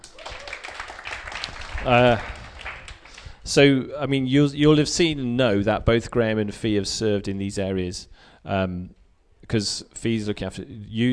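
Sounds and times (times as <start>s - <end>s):
audience applause: 0.0s - 3.4s
speech: 1.8s - 2.3s, 3.5s - 11.1s.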